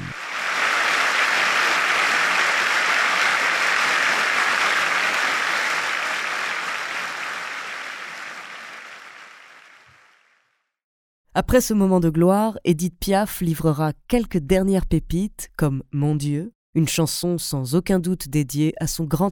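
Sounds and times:
standing ovation applause from audience: 0.0 - 10.4
speech: 11.4 - 19.3.

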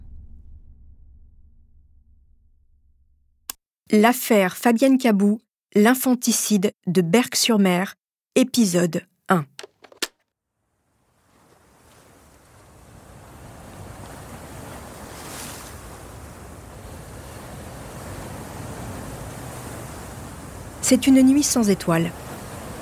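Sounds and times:
speech: 3.9 - 9.6, 20.9 - 22.2
brief clicks: 9.5 - 10.2
stormy sea waves on a beach at night: 10.7 - 22.8.

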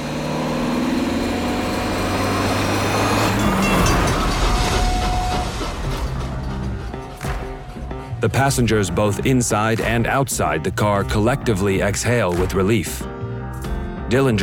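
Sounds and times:
high-speed train passing railroad crossing: 0.0 - 9.3
speech: 8.2 - 13.1, 14.1 - 14.4.

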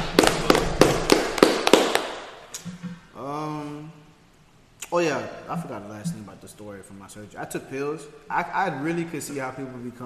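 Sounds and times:
hand clapping: 0.0 - 3.0
speech: 5.1 - 10.0.

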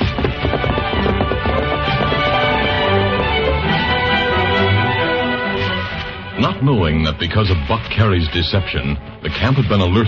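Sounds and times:
hoofbeats of the horse Silver along a trail: 0.0 - 5.4
speech: 6.6 - 10.0.

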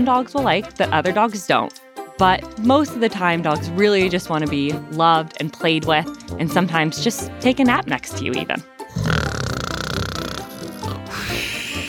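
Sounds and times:
speech: 0.0 - 9.2
person imitating snoring: 8.9 - 11.8.

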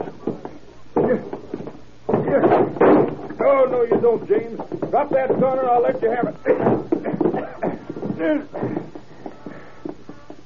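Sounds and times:
speech: 1.1 - 1.4, 4.0 - 6.8, 8.2 - 8.8
police forcing a door in with crashing impacts: 2.1 - 5.7.

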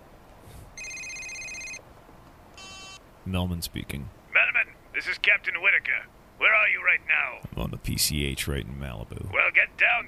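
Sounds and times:
electronic phone ring: 0.8 - 1.8, 2.6 - 3.0
speech: 3.3 - 4.2, 5.0 - 10.0.

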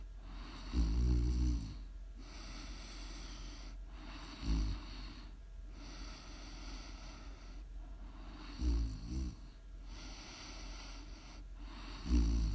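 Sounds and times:
person snoring: 0.3 - 7.4, 8.3 - 12.5
airy hiss of breathing: 2.2 - 8.8, 9.8 - 12.5.

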